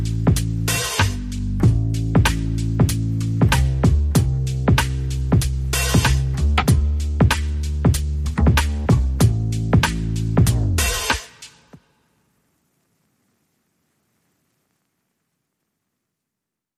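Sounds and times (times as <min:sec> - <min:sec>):
bass: 0:00.0 - 0:11.3
drums: 0:00.0 - 0:12.0.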